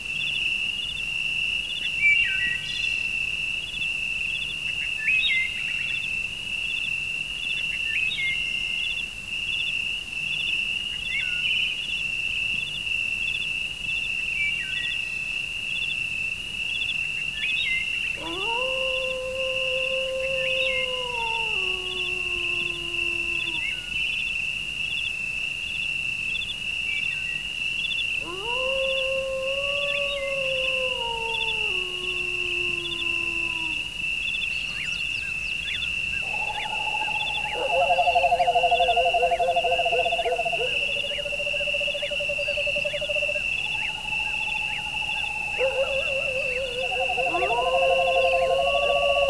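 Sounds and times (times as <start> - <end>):
forest ambience: 0.0 - 49.2.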